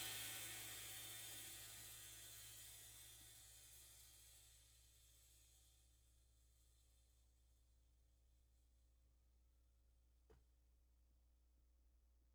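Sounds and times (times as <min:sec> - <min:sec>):
20 inch Bosphorus Versa cymbal: 0:00.0 - 0:07.4.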